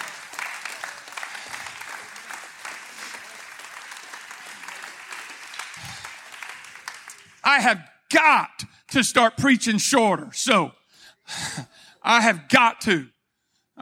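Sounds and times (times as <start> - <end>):
audience clapping hands: 0.0 - 7.8
speech: 7.5 - 13.2.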